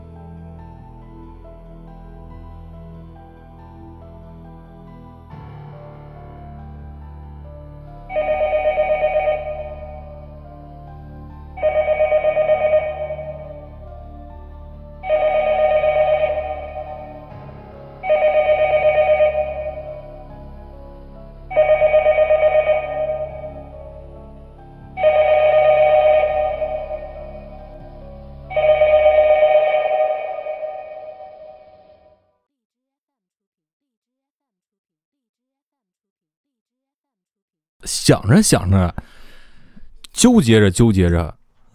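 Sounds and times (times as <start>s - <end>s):
telephone ringing: 8.1s - 10.4s, 11.6s - 13.8s, 15.1s - 17.3s, 18.1s - 20.3s, 21.6s - 23.8s, 25.0s - 27.8s, 28.6s - 31.7s
speech: 38.1s - 39.1s, 40.2s - 41.4s.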